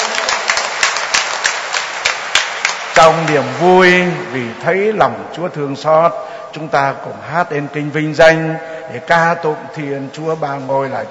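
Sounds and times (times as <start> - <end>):
Catholic congregation applauding during a Mass: 0.0 - 4.7
speech: 3.0 - 11.0.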